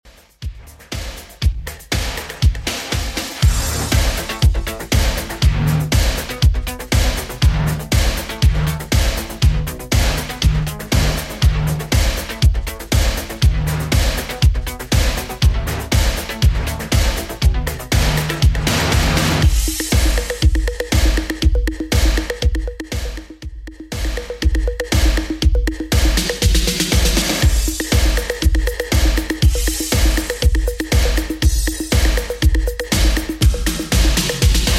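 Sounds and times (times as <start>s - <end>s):
80s drum machine beat at 120 bpm: 0.0s - 34.7s.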